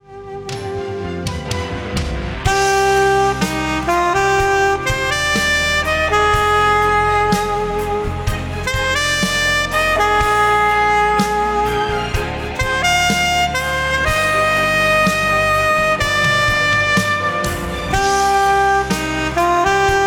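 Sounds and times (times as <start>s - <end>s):
alto saxophone: 0.0s - 20.0s.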